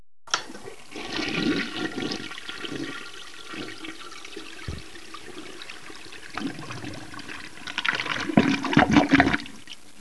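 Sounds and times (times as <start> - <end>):
toilet flush: 0.3 - 9.7.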